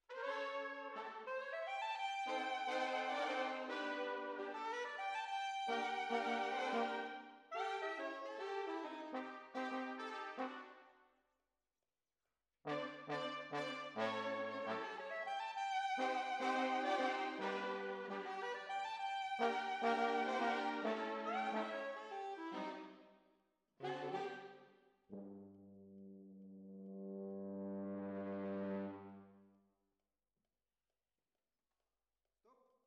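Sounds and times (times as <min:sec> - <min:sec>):
trombones: 0:00.1 - 0:10.8, 0:12.7 - 0:18.8, 0:19.4 - 0:22.9, 0:23.8 - 0:29.4.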